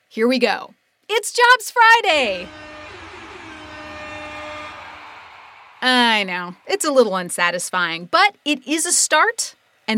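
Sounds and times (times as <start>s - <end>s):
speech: 0.1s - 2.6s, 5.8s - 9.9s
soft air horn blast: 2.1s - 6.7s.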